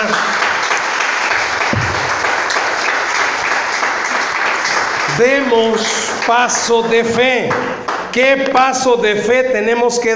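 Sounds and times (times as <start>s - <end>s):
audience applauding: 0.0s - 6.8s
speech: 5.2s - 10.1s.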